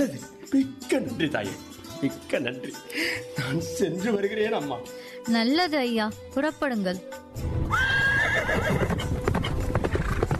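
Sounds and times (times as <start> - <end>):
speech: 0.0 - 7.8
horse whinnying: 7.7 - 10.3
horse hooves clip-clopping: 8.5 - 10.3.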